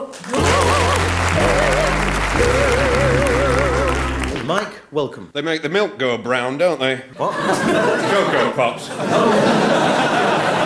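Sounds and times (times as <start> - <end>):
studio audience applause: 0.1 - 4.6
laughter: 0.2 - 4.4, 7.2 - 10.6
speech: 5.0 - 10.6.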